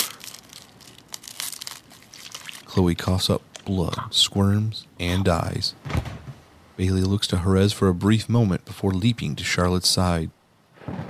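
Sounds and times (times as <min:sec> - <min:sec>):
ribcage being crushed with a crunch: 0:00.0 - 0:02.9
speech: 0:02.7 - 0:06.0, 0:06.8 - 0:10.4.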